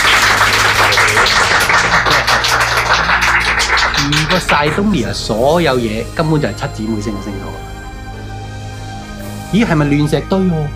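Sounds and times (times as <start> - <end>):
audience clapping: 0.0 - 5.2
speech: 4.4 - 7.8, 9.5 - 10.7.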